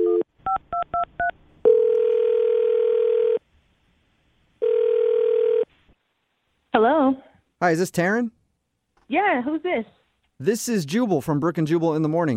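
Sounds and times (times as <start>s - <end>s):
telephone call ringing out: 0.0s - 3.4s, 4.6s - 5.7s
speech: 7.6s - 8.4s, 9.1s - 12.3s.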